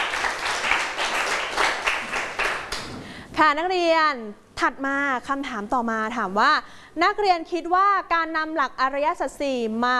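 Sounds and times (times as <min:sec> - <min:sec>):
group of students clapping: 0:00.0 - 0:03.0
speech: 0:03.4 - 0:09.9.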